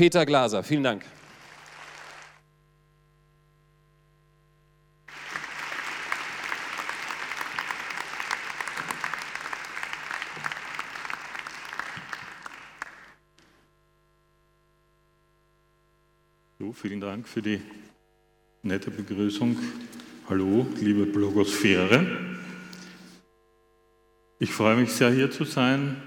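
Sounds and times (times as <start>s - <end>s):
speech: 0.0s - 1.2s, 16.8s - 17.9s, 18.6s - 22.4s, 24.4s - 26.0s
warm audience applause: 1.1s - 2.4s, 5.1s - 13.2s.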